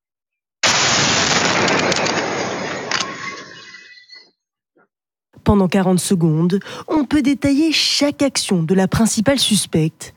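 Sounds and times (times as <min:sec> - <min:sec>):
explosion in played video footage: 0:00.6 - 0:04.2
speech: 0:05.5 - 0:10.1.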